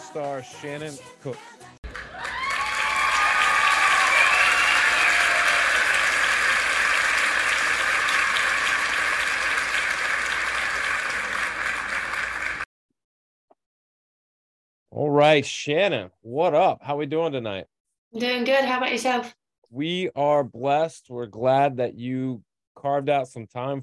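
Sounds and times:
speech: 0:00.1 - 0:01.8, 0:15.0 - 0:23.8
applause greeting a podcast guest: 0:01.8 - 0:12.7.

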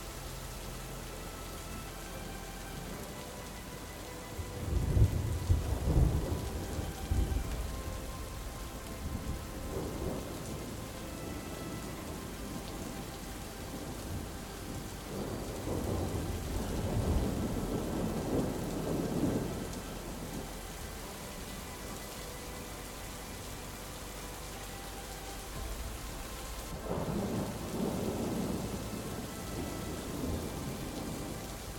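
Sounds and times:
rain hissing: 0:00.0 - 0:31.7
soft sustained musical tone: 0:00.0 - 0:31.7
thunder rumbling: 0:04.3 - 0:22.0, 0:25.6 - 0:31.7.

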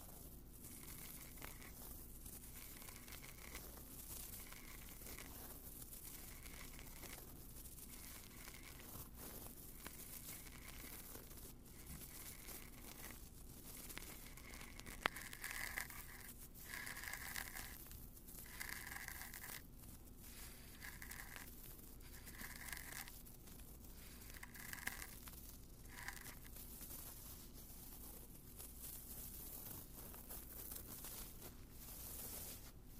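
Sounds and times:
close scratching and crinkling rubs from ear cleaning with odd objects: 0:00.0 - 0:32.9.

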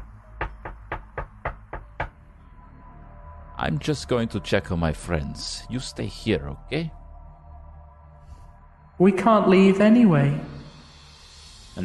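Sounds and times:
knocking against wood from the attic: 0:00.4 - 0:02.2
speech: 0:03.6 - 0:07.0, 0:09.0 - 0:10.5.

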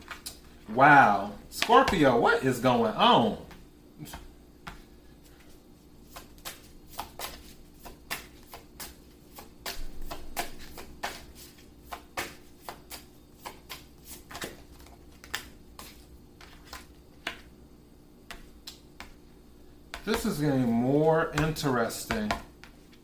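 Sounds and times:
soft hiss: 0:00.0 - 0:23.0
speech: 0:00.7 - 0:04.2, 0:20.2 - 0:22.5
playing cards being shuffled and dealt: 0:03.5 - 0:17.5, 0:19.9 - 0:23.0.

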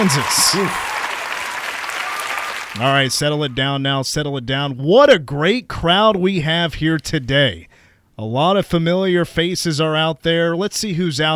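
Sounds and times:
speech: 0:00.0 - 0:01.0, 0:02.8 - 0:11.3
large crowd applauding and cheering: 0:00.0 - 0:03.6.

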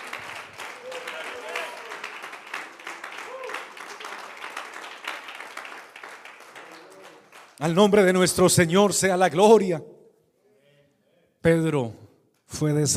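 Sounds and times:
audience applause: 0:00.0 - 0:07.7
speech: 0:07.6 - 0:09.9, 0:11.4 - 0:12.9.

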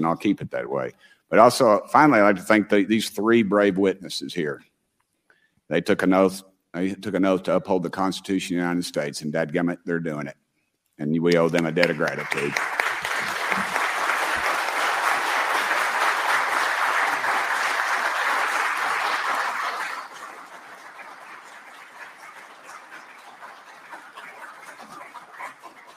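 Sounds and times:
speech: 0:00.0 - 0:04.7, 0:05.7 - 0:10.4, 0:11.0 - 0:12.8
audience applause: 0:11.3 - 0:25.9.

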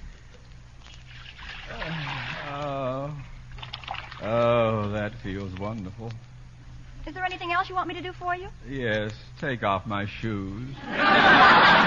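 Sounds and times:
hot water poured into a basin: 0:01.0 - 0:02.8
speech: 0:05.0 - 0:06.3, 0:07.1 - 0:11.8
laughter: 0:10.8 - 0:11.8.

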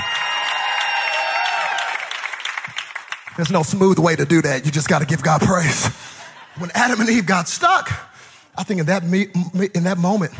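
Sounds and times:
audience applauding and cheering: 0:00.0 - 0:04.4
speech: 0:03.4 - 0:10.3.

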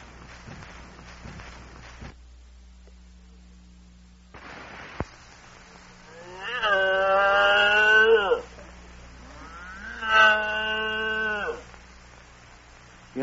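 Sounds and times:
faint steady hum: 0:00.0 - 0:13.2
cow mooing: 0:06.1 - 0:08.5, 0:09.2 - 0:11.7.

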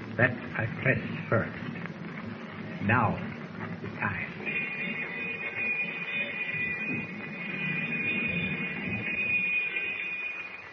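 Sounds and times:
speech: 0:00.2 - 0:01.8, 0:02.8 - 0:04.4
submarine alarm bell: 0:04.1 - 0:10.7.

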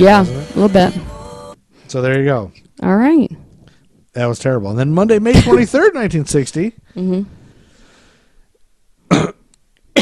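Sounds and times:
speech: 0:00.0 - 0:01.1, 0:01.9 - 0:03.4, 0:04.2 - 0:07.4
sneeze or cough: 0:09.1 - 0:09.4.

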